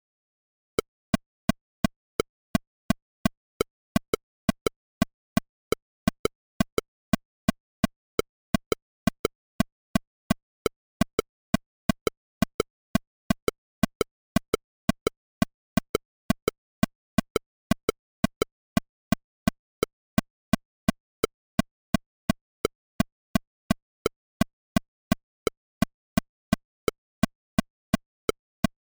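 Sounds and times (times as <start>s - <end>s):
parody click: 0.8s - 28.8s.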